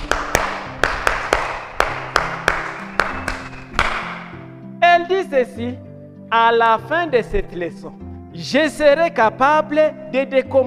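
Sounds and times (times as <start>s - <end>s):
classroom applause: 0.0s - 4.2s
speech: 5.0s - 10.6s.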